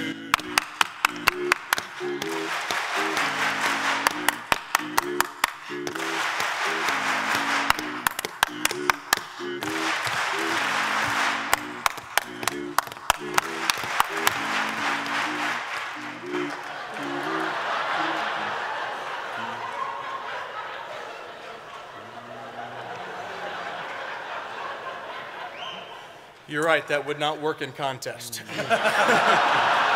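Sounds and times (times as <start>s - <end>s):
single person clapping rhythmic patterns: 0.0s - 18.6s
voices humming: 0.0s - 24.5s
crowd clapping: 0.0s - 25.6s, 28.6s - 29.9s
laughter: 0.0s - 26.3s, 28.3s - 29.9s
speech: 26.6s - 29.8s.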